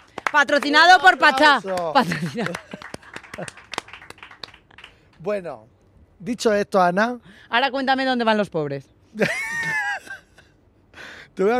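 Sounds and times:
scattered hand claps from a small group: 0:00.0 - 0:05.2
speech: 0:00.3 - 0:02.8, 0:03.4 - 0:03.6, 0:05.2 - 0:09.6, 0:11.4 - 0:11.5
laughter: 0:01.2 - 0:03.9, 0:09.2 - 0:10.4.

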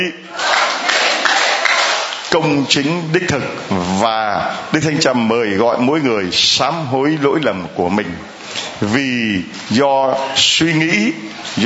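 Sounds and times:
speech: 0:00.0 - 0:00.5, 0:02.3 - 0:11.6
audience applauding: 0:00.4 - 0:02.4.

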